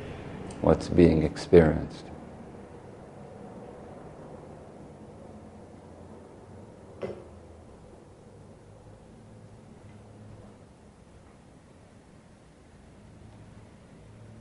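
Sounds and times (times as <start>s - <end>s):
airplane passing: 0.0s - 6.8s
speech: 0.6s - 2.1s.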